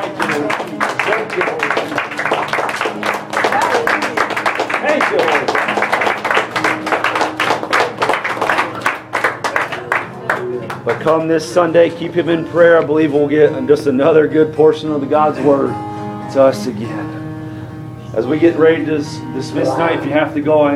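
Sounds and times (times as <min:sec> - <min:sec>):
audience clapping: 0:00.0 - 0:11.4
speech: 0:11.0 - 0:17.2, 0:18.1 - 0:20.7
voices murmuring and calling out: 0:19.5 - 0:20.4.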